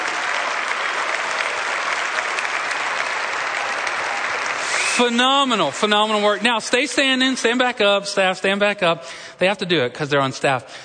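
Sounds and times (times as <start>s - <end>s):
audience applause: 0.0s - 6.4s
speech: 5.0s - 10.8s.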